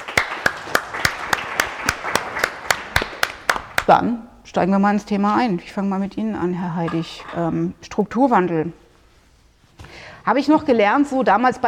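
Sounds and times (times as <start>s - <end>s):
audience applause: 0.0s - 3.8s
speech: 3.9s - 8.8s, 10.2s - 11.6s.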